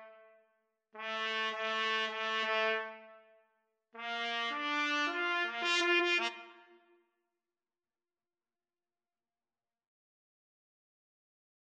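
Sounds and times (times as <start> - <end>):
trumpet duet: 1.0 - 3.1, 4.0 - 6.8.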